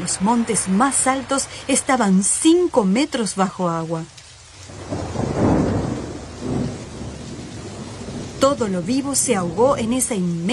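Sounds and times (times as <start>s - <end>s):
heavy rain: 0.0s - 10.5s
speech: 0.1s - 4.2s, 8.4s - 10.5s
thunder: 4.7s - 9.8s.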